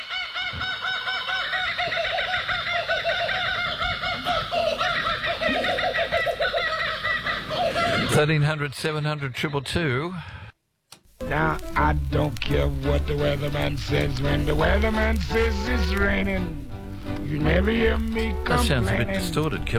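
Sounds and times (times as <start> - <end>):
chorus of kookaburras laughing: 0.0 - 9.7, 13.5 - 16.3
speech: 8.2 - 10.4, 11.3 - 19.7.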